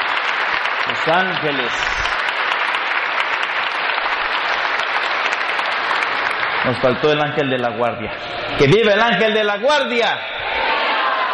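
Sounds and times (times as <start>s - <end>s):
applause: 0.0s - 7.8s
speech: 0.9s - 2.1s, 6.6s - 10.3s.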